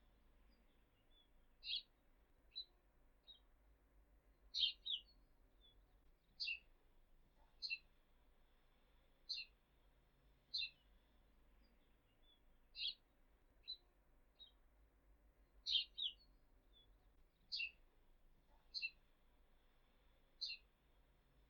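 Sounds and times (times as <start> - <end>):
house sparrow chirping: 0.5 - 1.9, 2.5 - 3.5, 4.5 - 6.7, 7.5 - 7.8, 9.3 - 9.6, 10.5 - 11.0, 11.6 - 13.0, 13.6 - 13.8, 14.4 - 14.7, 15.6 - 17.8, 18.6 - 19.0, 20.4 - 20.7.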